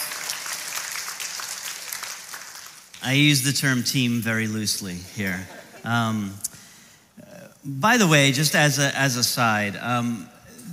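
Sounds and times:
audience applause: 0.0 - 3.0
speech: 3.0 - 6.5, 7.6 - 10.7.

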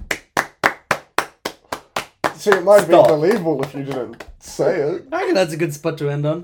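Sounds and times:
single person clapping hands: 0.0 - 4.6
speech: 2.4 - 6.4.

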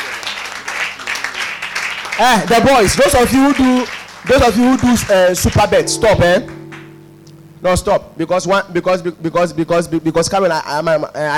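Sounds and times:
crowd clapping: 0.0 - 6.9
speech: 2.2 - 6.6, 7.6 - 11.3.

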